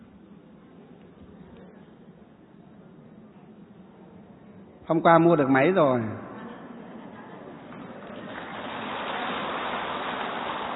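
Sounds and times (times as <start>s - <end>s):
speech: 4.9s - 6.2s
crowd applauding: 7.3s - 10.7s.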